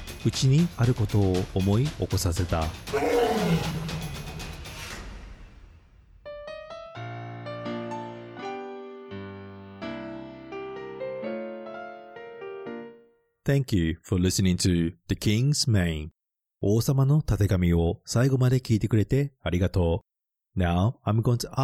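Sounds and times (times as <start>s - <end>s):
speech: 0.2s - 3.9s, 13.5s - 21.6s
lion roaring: 2.9s - 4.4s
soft melodic piano-like music: 6.3s - 13.3s.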